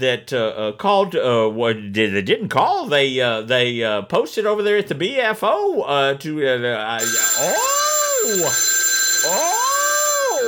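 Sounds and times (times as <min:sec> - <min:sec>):
speech: 0:00.0 - 0:09.6
novelty telephone ringtone with a wailing meow-like tone: 0:07.0 - 0:10.4.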